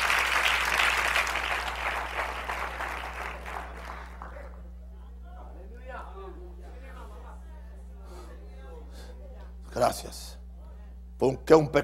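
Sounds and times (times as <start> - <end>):
audience clapping: 0.0 - 4.7
low electrical hum: 0.0 - 11.8
speech: 9.8 - 10.3, 11.2 - 11.8.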